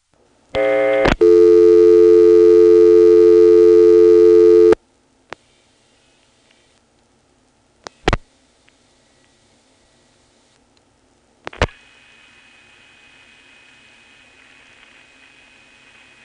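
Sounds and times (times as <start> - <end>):
telephone call tones on a T-carrier line from Occoquan to Manassas: 0.6 - 4.8.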